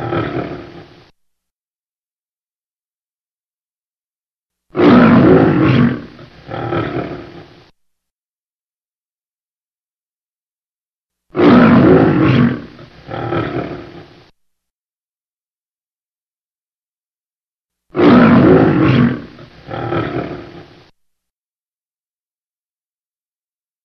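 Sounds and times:
lion roaring: 0:00.0 - 0:01.1, 0:04.7 - 0:07.7, 0:11.3 - 0:14.2, 0:17.9 - 0:20.9.

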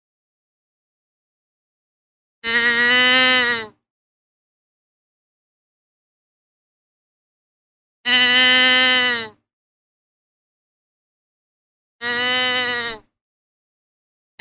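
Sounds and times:
deer bleating: 0:02.4 - 0:03.8, 0:08.1 - 0:09.4, 0:12.0 - 0:13.1.

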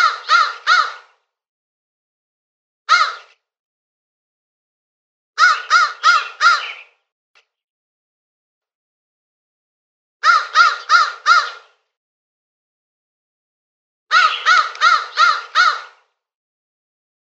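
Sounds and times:
crow cawing with harsh rasping notes: 0:00.0 - 0:01.2, 0:02.9 - 0:03.3, 0:05.4 - 0:06.9, 0:10.2 - 0:11.6, 0:14.1 - 0:16.1.

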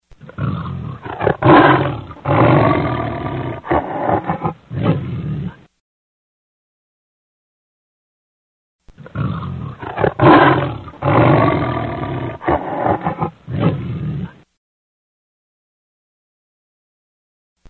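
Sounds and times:
lion giving deep throaty roars: 0:00.2 - 0:05.7, 0:09.0 - 0:14.4.

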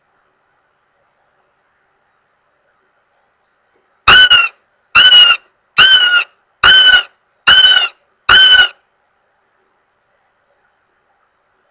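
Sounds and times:
Northern goshawk wailing with loud drawn-out nasal squeals: 0:04.1 - 0:08.8.

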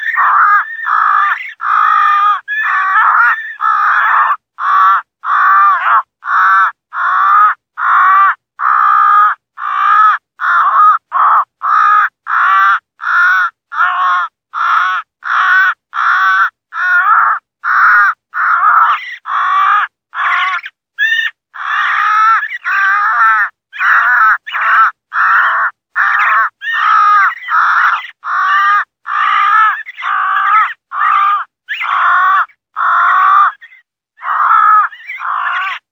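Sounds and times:
owl calling during a fight: 0:00.0 - 0:35.8.

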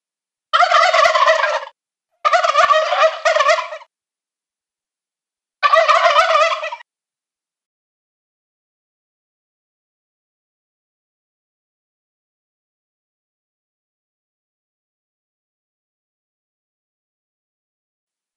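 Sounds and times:
adult male wild turkey gobbling: 0:00.6 - 0:03.9, 0:05.6 - 0:06.8.

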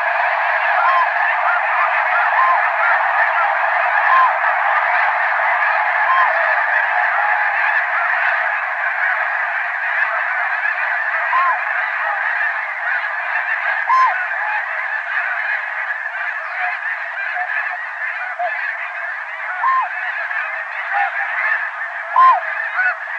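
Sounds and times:
snow geese: 0:00.0 - 0:23.1.

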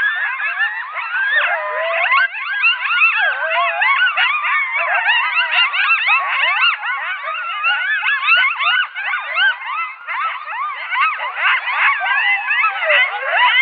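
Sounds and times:
coyote yipping chorus: 0:00.0 - 0:13.5.

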